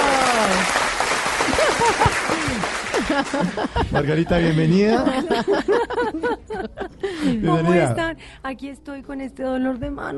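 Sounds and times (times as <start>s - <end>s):
audience applause: 0.0s - 4.0s
laughter: 1.4s - 7.4s
speech: 3.2s - 10.1s.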